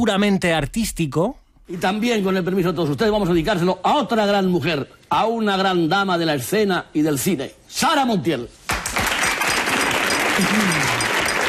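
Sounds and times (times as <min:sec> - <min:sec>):
speech: 0:00.0 - 0:08.6, 0:10.4 - 0:11.0
audience applause: 0:08.7 - 0:11.4.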